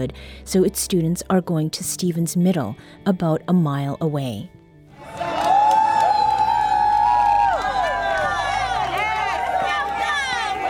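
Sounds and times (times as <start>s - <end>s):
speech: 0.0s - 5.3s
alumni cheering students getting off a bus: 4.9s - 10.6s.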